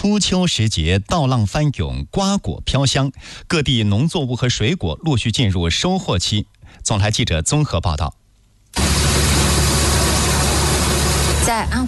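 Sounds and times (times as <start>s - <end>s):
speech: 0.0s - 9.0s, 11.4s - 11.8s
combine harvester engine droning in a ratoon rice field in Jianping town, Anhui: 8.8s - 11.6s.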